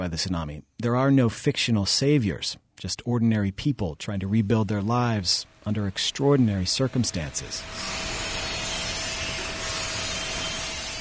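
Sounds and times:
speech: 0:00.0 - 0:08.2
workers grinding welds on a smokestack in a metal shop: 0:05.3 - 0:10.9.

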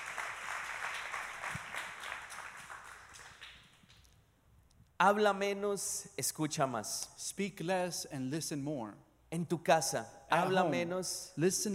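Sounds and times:
congregation applause during a bilingual church sermon: 0:00.0 - 0:03.9
speech: 0:05.0 - 0:11.7.

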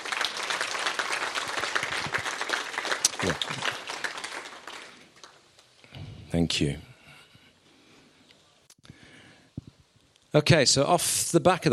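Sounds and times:
round of applause: 0:00.0 - 0:05.4
speech: 0:03.2 - 0:03.7, 0:06.3 - 0:06.9, 0:10.3 - 0:11.7.

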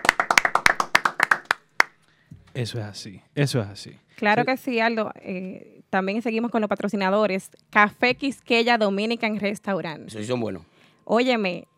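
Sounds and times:
applause from a few people: 0:00.0 - 0:02.0
speech: 0:02.6 - 0:11.7.

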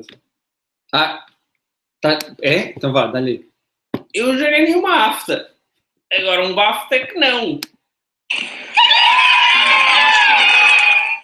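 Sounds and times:
speech: 0:00.0 - 0:00.2, 0:00.9 - 0:01.3, 0:02.0 - 0:03.5, 0:04.1 - 0:05.5, 0:06.1 - 0:07.7
applause from a played video: 0:08.3 - 0:11.2.

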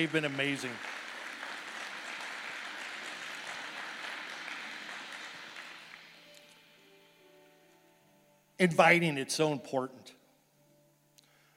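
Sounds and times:
speech: 0:00.0 - 0:01.0, 0:08.6 - 0:10.2
crowd applauding: 0:00.0 - 0:06.8.

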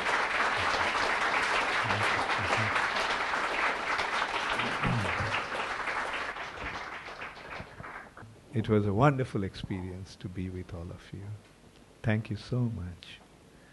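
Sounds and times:
audience applause: 0:00.0 - 0:08.2
speech: 0:08.6 - 0:13.2.

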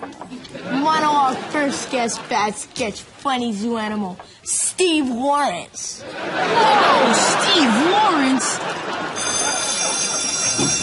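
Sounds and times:
laughter: 0:00.3 - 0:02.5, 0:06.0 - 0:10.8
speech: 0:01.6 - 0:09.5
bell ringing: 0:08.9 - 0:10.8.

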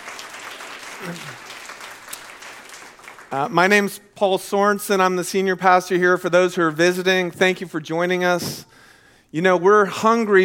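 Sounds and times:
audience applause: 0:00.0 - 0:03.6
person cheering: 0:01.0 - 0:01.4
speech: 0:01.0 - 0:01.5, 0:03.3 - 0:08.7, 0:09.3 - 0:10.4.

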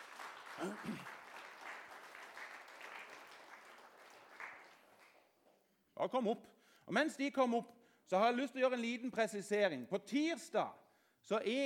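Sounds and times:
audience applause: 0:00.0 - 0:05.2
speech: 0:00.6 - 0:01.2, 0:06.0 - 0:11.6.

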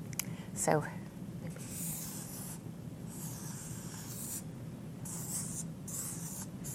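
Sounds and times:
speech: 0:00.6 - 0:01.0
scratchy drawing strokes sketching a flower: 0:01.6 - 0:04.4, 0:05.1 - 0:06.7.

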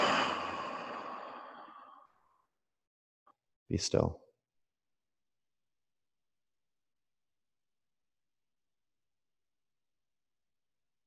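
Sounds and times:
deep breath exhaled through an open mouth: 0:00.0 - 0:02.1
speech: 0:03.7 - 0:04.2.

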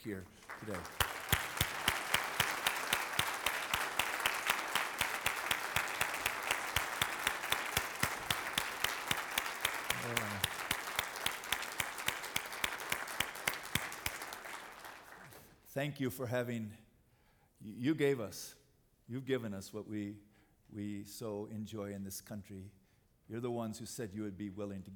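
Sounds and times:
speech: 0:00.0 - 0:01.1, 0:15.8 - 0:16.9, 0:17.6 - 0:24.9
audience applause for veterans: 0:00.0 - 0:15.5.

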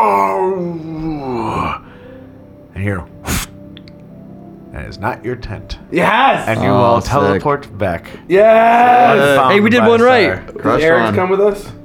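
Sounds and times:
person imitating a howl: 0:00.0 - 0:01.8, 0:08.3 - 0:09.5
speech: 0:04.9 - 0:11.8.

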